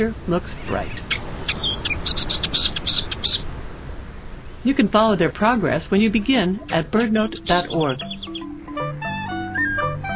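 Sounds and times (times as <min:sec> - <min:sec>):
speech: 0:00.0 - 0:01.2, 0:04.6 - 0:08.1
millerbird singing: 0:00.0 - 0:03.5, 0:06.0 - 0:10.1
hiss: 0:00.0 - 0:10.1.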